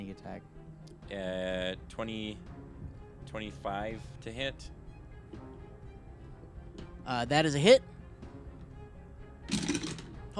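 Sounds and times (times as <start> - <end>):
speech: 0.2 - 2.6, 3.3 - 4.8, 7.1 - 7.9
handful of dice clattering and rattling: 9.5 - 10.1.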